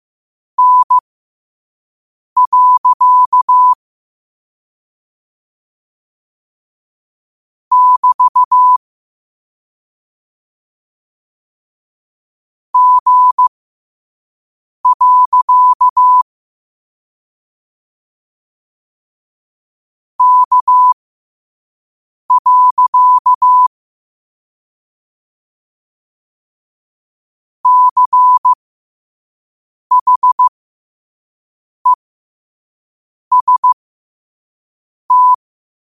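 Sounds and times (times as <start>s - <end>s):
morse code at 5 wpm: 0.6s - 1.0s, 2.4s - 3.8s, 7.7s - 8.8s, 12.8s - 13.5s, 14.8s - 16.2s, 20.2s - 21.0s, 22.3s - 23.7s, 27.6s - 28.6s, 29.9s - 30.5s, 33.3s - 33.8s, 35.1s - 35.4s.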